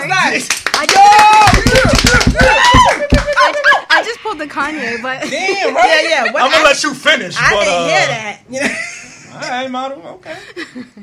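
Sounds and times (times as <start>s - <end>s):
speech: 0.3s - 2.0s, 4.9s - 8.8s, 9.4s - 11.0s
clapping: 0.4s - 3.7s
laughter: 1.7s - 4.3s.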